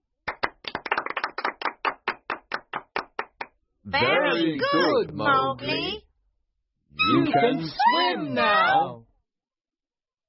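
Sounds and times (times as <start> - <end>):
lively hand clapping by a small group: 0.2 - 3.6
speech: 3.9 - 6.0, 7.0 - 9.0.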